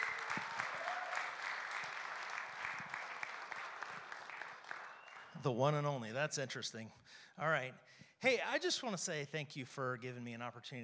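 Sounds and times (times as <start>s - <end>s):
audience applause: 0.0s - 5.5s
speech: 5.4s - 10.8s.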